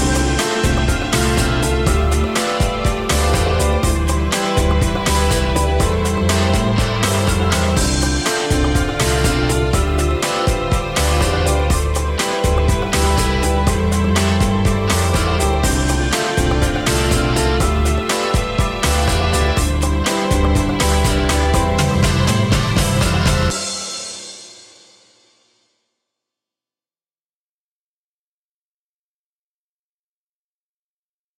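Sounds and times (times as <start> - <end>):
jingle: 0.0 - 24.6.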